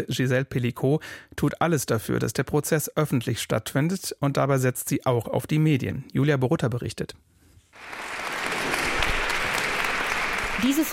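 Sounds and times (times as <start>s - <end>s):
speech: 0.0s - 8.0s, 10.6s - 10.9s
dozens of people applauding outside the Avignon courthouse: 7.8s - 10.9s.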